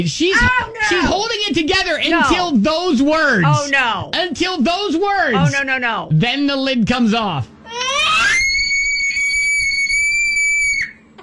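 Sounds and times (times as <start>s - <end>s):
speech: 0.0s - 7.5s
girl screaming: 0.3s - 1.0s, 7.7s - 11.0s.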